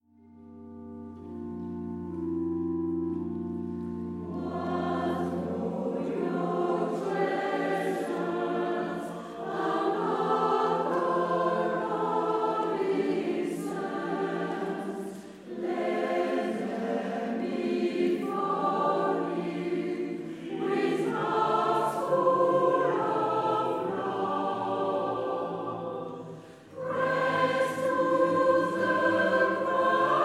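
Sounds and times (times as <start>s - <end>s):
Christmas lullaby: 0.1s - 30.2s.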